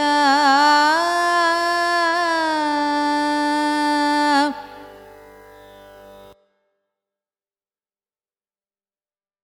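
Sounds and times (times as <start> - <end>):
carnatic music in raga rasikapriya: 0.0 - 6.8.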